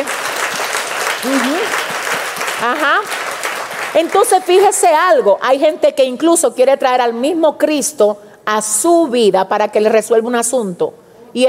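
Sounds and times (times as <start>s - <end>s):
audience applause: 0.0s - 4.2s
speech: 1.2s - 1.5s, 2.6s - 3.2s, 3.9s - 11.4s.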